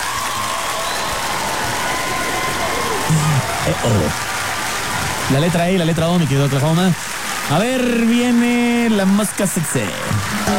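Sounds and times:
applause: 0:00.0 - 0:10.5
speech: 0:03.1 - 0:04.3, 0:05.3 - 0:10.5.

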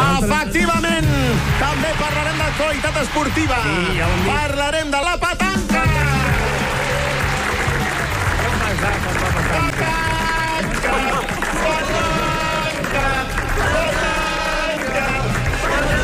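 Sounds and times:
speech: 0:00.2 - 0:06.5
radio studio audience applauding: 0:01.3 - 0:04.5, 0:06.0 - 0:16.0
crowd voices and chatter: 0:06.4 - 0:16.0.

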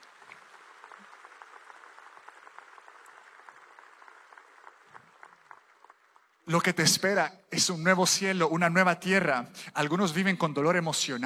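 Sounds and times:
audience applause: 0:00.0 - 0:07.2
speech: 0:06.5 - 0:11.2.

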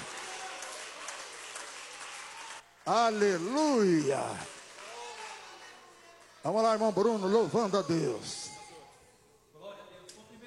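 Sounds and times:
audience clapping: 0:00.0 - 0:07.1
speech: 0:02.9 - 0:04.6, 0:06.4 - 0:08.6.

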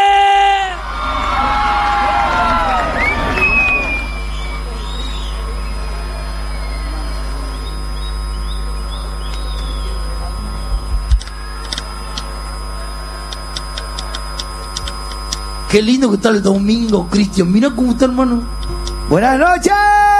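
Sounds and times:
electrical hum: 0:00.0 - 0:20.1
crowd clapping and cheering: 0:00.6 - 0:04.7
low murmur: 0:00.8 - 0:17.1
shrill whistles: 0:02.0 - 0:10.0
speech: 0:15.7 - 0:20.1.

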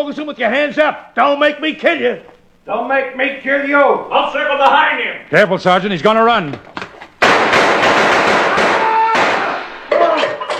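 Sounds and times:
speech: 0:00.0 - 0:06.7
gunshots: 0:07.2 - 0:10.0.

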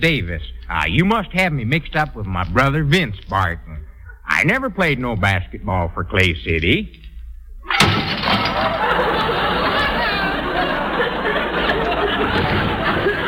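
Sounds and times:
speech: 0:00.0 - 0:07.0
dishes crashing and shattering crockery: 0:07.7 - 0:09.9
laughter: 0:08.2 - 0:13.2.

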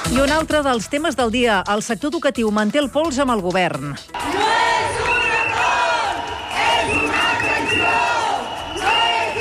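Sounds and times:
speech: 0:00.1 - 0:04.6
protesting crowd of striking teachers shouting: 0:04.1 - 0:09.3.

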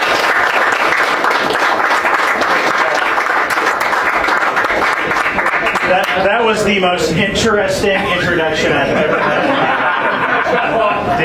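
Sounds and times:
audience round of applause: 0:00.0 - 0:06.3
speech: 0:05.9 - 0:11.2
laughter: 0:07.8 - 0:11.2.

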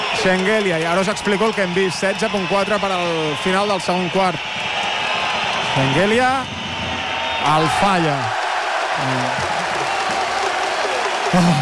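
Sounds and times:
large arena crowd cheering: 0:00.0 - 0:11.5
speech: 0:00.2 - 0:04.7, 0:05.8 - 0:06.6, 0:07.4 - 0:08.4, 0:09.0 - 0:09.5, 0:11.3 - 0:11.5.

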